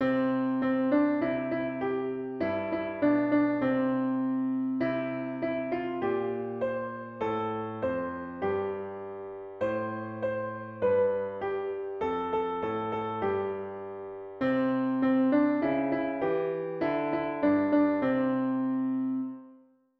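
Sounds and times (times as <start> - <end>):
piano: 0.0 - 19.9.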